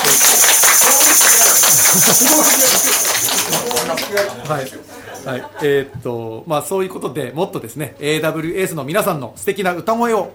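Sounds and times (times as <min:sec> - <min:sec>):
applause: 0:00.0 - 0:04.7
laughter: 0:00.0 - 0:06.1
speech: 0:03.9 - 0:10.3.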